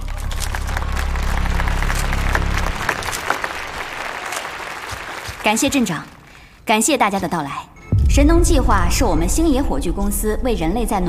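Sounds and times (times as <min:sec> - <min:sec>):
warm applause: 0:00.0 - 0:06.4
speech: 0:05.5 - 0:11.0.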